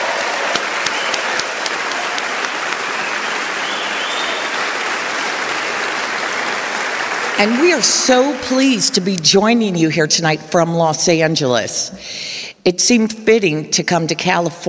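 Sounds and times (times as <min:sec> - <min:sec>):
audience applause: 0:00.0 - 0:09.2
speech: 0:07.4 - 0:14.6.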